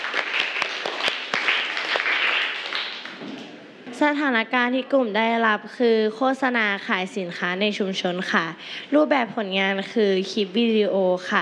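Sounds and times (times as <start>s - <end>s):
audience clapping: 0.0s - 3.6s
speech: 4.0s - 11.4s.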